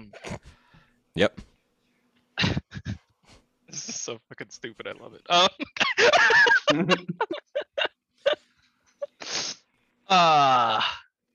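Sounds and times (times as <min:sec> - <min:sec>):
speech: 0:01.2 - 0:01.5, 0:04.1 - 0:07.5, 0:10.1 - 0:11.0
laughter: 0:05.3 - 0:08.4
person sneezing: 0:09.2 - 0:09.6.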